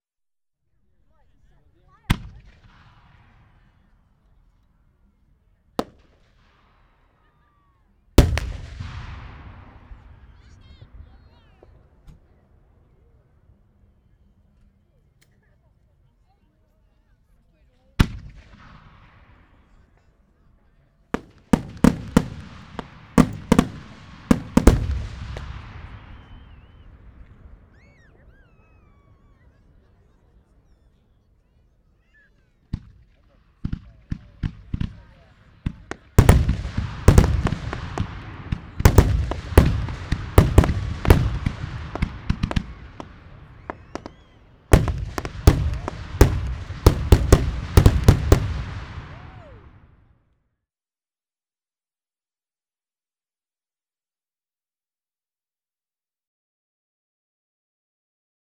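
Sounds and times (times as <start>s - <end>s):
fireworks: 1.2s - 4.6s, 5.8s - 13.2s, 18.0s - 20.1s, 21.1s - 31.0s, 32.0s - 50.0s.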